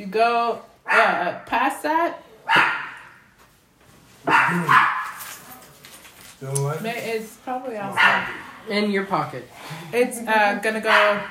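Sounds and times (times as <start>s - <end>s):
speech: 0.0s - 2.7s, 4.5s - 5.2s, 6.4s - 11.2s
dog barking: 0.9s - 1.2s, 2.4s - 3.2s, 4.2s - 5.3s, 7.9s - 8.4s, 10.8s - 11.2s.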